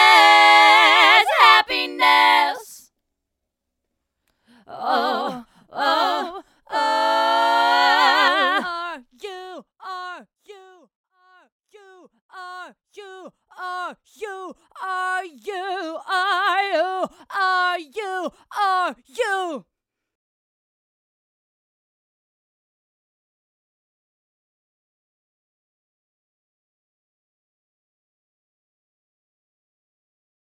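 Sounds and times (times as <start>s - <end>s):
happy vocal: 0.0s - 2.9s, 4.5s - 10.9s, 11.8s - 19.6s.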